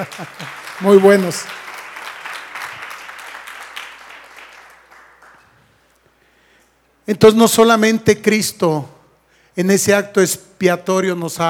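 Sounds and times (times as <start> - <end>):
laughter: 0.0 - 0.7
speech: 0.0 - 1.6, 7.1 - 9.0, 9.6 - 11.4
audience applause: 0.0 - 5.6.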